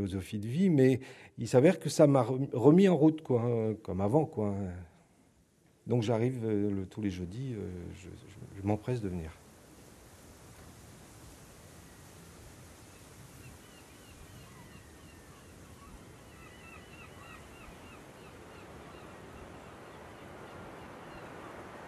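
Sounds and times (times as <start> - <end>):
speech: 0.0 - 4.9, 5.9 - 9.4
light wind: 3.3 - 21.8
surf on a beach in the bay of Douarnenez: 7.7 - 21.8
scattered high bird calls: 12.9 - 21.8.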